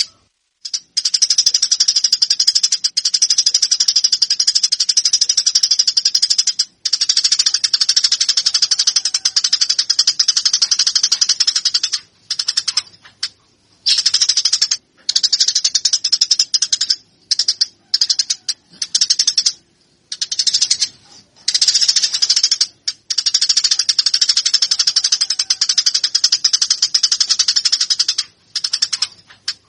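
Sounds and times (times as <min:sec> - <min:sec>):
Eurasian tree sparrow chirping: 0:00.0 - 0:29.6.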